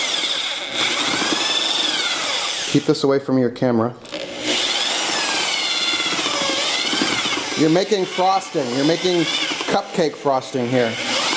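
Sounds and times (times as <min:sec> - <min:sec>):
power drill with paddle mixing joint compound in a bucket: 0:00.0 - 0:03.2, 0:04.0 - 0:11.3
speech: 0:02.7 - 0:04.1, 0:07.6 - 0:11.1.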